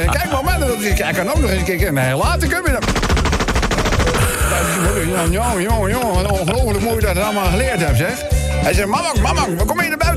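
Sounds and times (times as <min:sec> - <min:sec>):
speech: 0:00.0 - 0:03.3, 0:04.5 - 0:10.1
machine gun fired across a farmyard: 0:02.7 - 0:04.6.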